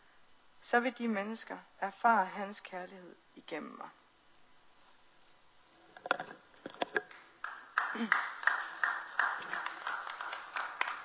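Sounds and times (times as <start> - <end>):
speech: 0.7 - 4.0, 8.0 - 8.3
audience applause: 7.4 - 11.0.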